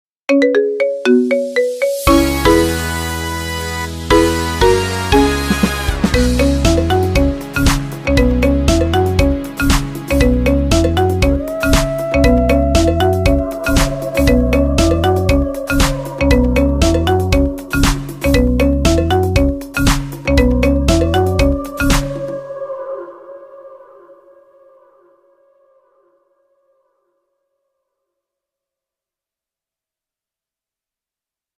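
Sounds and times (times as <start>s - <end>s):
marimba Halloween ringtone: 0.3s - 3.0s, 4.1s - 5.6s, 6.2s - 22.3s.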